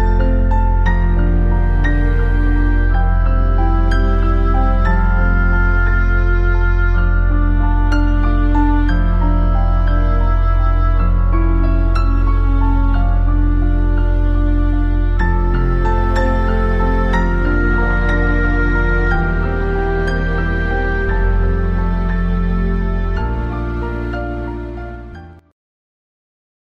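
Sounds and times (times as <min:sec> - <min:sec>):
live piano playing at a reception: 0:00.0 - 0:25.4.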